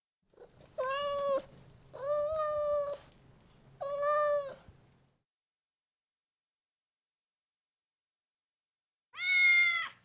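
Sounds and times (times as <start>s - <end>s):
domestic cat meowing: 0.8s - 3.0s, 9.2s - 10.0s.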